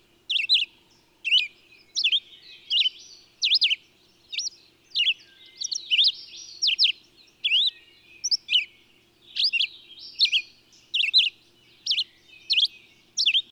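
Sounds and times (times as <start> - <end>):
bird chirping in bursts: 0.0 - 13.5.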